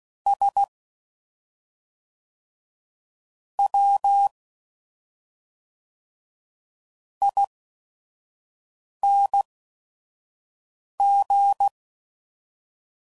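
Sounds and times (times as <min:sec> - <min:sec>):
CW Morse code groups at 5 WPM: 0:00.3 - 0:00.7, 0:03.6 - 0:04.3, 0:07.2 - 0:07.5, 0:11.0 - 0:11.7.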